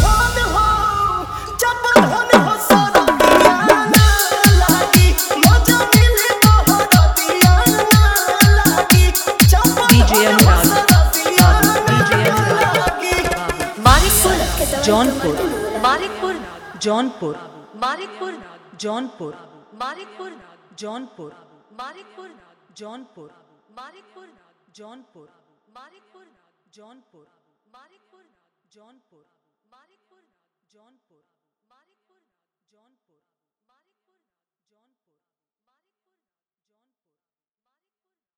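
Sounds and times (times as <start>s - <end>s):
dholak bass mix: 0.0s - 16.2s.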